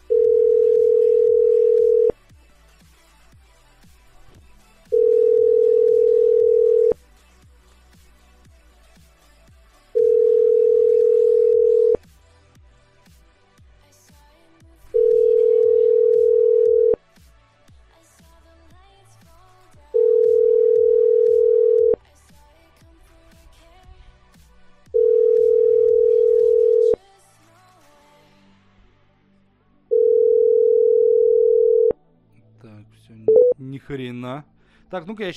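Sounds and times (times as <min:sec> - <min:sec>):
telephone tone beeps after a number is dialled: 0:00.0 - 0:02.2, 0:04.9 - 0:07.0, 0:10.0 - 0:12.0, 0:15.0 - 0:17.0, 0:20.0 - 0:22.0, 0:25.0 - 0:27.0, 0:29.9 - 0:32.0, 0:33.3 - 0:33.6
speech: 0:33.9 - 0:35.3.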